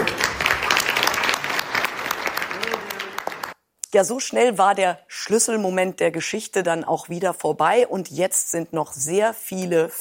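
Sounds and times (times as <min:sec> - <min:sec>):
applause: 0:00.0 - 0:03.6
speech: 0:03.9 - 0:10.0.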